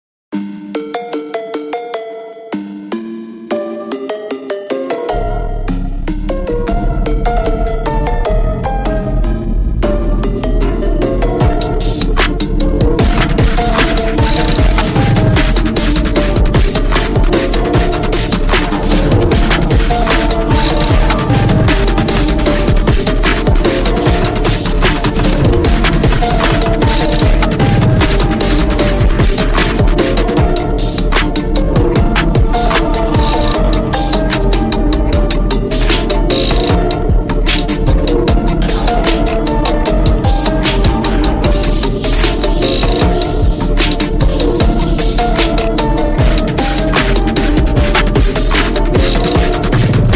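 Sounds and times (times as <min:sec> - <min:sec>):
slowed phonk music: 0:00.3 - 0:50.1.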